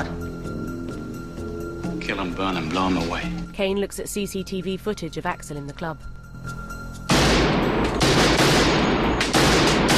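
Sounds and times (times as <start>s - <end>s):
speech: 2.1s - 6.6s
rapid continuous gunfire in a shooting gallery: 7.1s - 9.9s.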